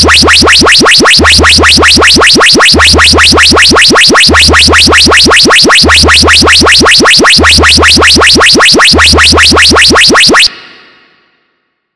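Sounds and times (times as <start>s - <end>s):
water beat for a DJ competition: 0.0s - 10.5s.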